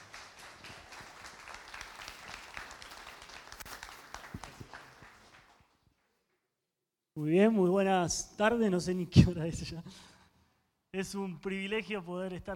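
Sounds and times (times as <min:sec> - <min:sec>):
audience applause: 0:00.0 - 0:05.6
speech: 0:07.2 - 0:10.1, 0:11.0 - 0:12.5.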